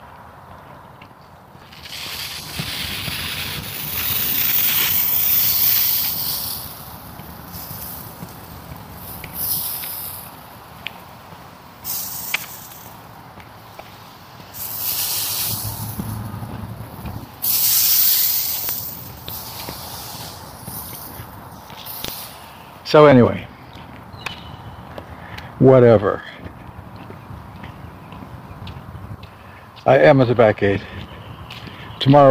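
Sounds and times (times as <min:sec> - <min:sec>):
lawn sprinklers spraying water: 0:01.6 - 0:23.4
speech: 0:22.9 - 0:23.5, 0:25.6 - 0:26.4, 0:29.9 - 0:31.0, 0:32.0 - 0:32.2.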